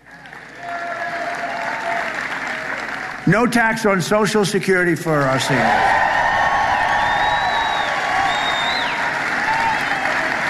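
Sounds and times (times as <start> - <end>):
crowd applause: 0.0 - 4.3, 5.0 - 10.4
speech: 3.3 - 6.1
whistles: 6.6 - 10.0.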